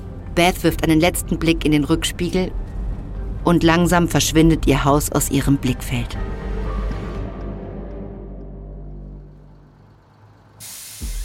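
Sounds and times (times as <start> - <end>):
heavy vehicle engine rumbling: 0.0 - 10.6
speech: 0.4 - 2.7, 3.4 - 6.5
school bus doors opening with pneumatic air hiss: 10.6 - 11.2.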